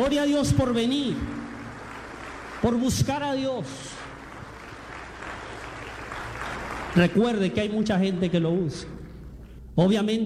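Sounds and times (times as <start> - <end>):
speech: 0.0 - 1.4, 2.6 - 4.0, 6.9 - 9.0, 9.8 - 10.2
Catholic church congregation applauding at a Friday prayer meeting: 0.0 - 9.2.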